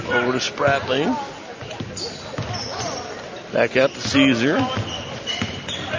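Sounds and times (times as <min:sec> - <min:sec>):
speech: 0:00.1 - 0:01.4, 0:03.5 - 0:04.9
basketball bouncing on the court during a game: 0:01.6 - 0:02.9, 0:04.0 - 0:05.8.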